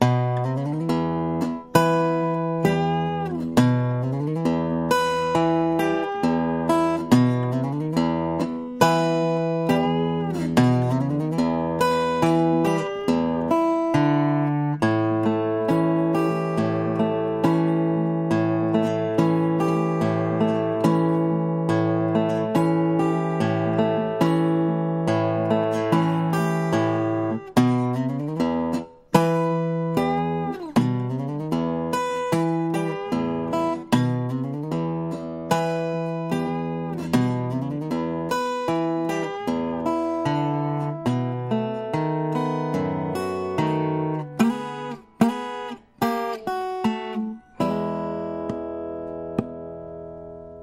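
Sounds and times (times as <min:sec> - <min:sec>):
slow railroad blues music: 0:00.0 - 0:50.6.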